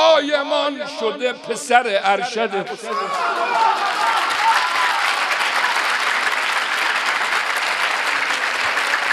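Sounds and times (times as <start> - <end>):
speech: 0.2 - 4.1
crowd clapping along at a religious gathering praising Hussein: 2.9 - 9.1.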